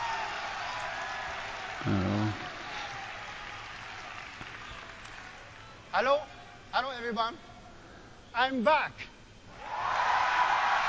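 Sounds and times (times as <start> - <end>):
crowd cheering and clapping at a video game event: 0.0 - 5.6, 9.6 - 10.8
speech: 1.8 - 2.4, 6.0 - 6.3, 7.0 - 7.5, 8.4 - 9.1.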